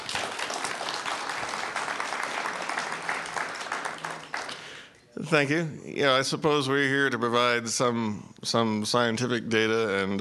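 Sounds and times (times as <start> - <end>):
audience applause welcoming speakers at a Texas A&M University event: 0.0 - 5.0
speech: 5.3 - 10.1.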